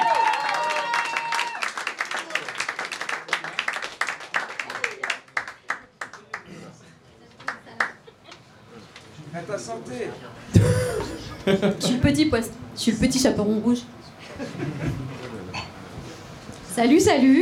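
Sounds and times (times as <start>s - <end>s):
high whoops and voices: 0.0s - 1.7s
audience applause: 0.0s - 6.5s
laughter: 7.6s - 8.7s, 10.6s - 12.2s, 14.2s - 15.4s
speech: 9.5s - 14.0s, 16.8s - 17.4s.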